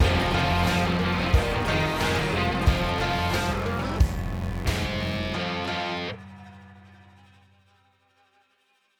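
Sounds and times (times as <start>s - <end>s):
layered music outro: 0.0s - 6.2s.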